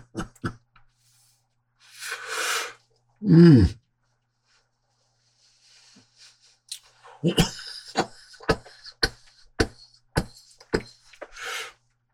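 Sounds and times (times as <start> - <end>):
breathy exhale: 1.9 - 2.8, 11.3 - 11.8
person coughing after smoking hash: 7.1 - 11.4.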